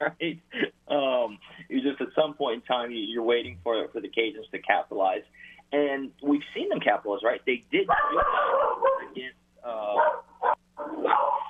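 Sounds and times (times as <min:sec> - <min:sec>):
speech: 0:00.0 - 0:01.1, 0:02.2 - 0:10.1
laughter: 0:00.0 - 0:10.0
guard dog barking at home: 0:07.9 - 0:09.2, 0:10.0 - 0:11.4.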